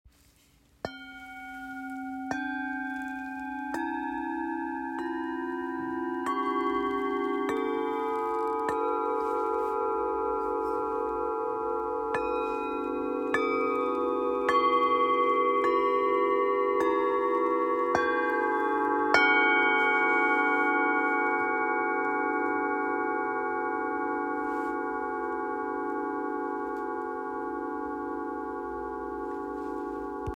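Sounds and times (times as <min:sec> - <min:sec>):
Tibetan singing bowls: 0:00.3 - 0:30.3.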